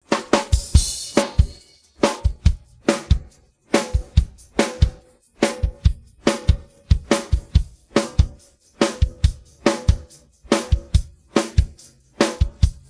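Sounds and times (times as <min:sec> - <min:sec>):
drum pattern: 0:00.0 - 0:12.8.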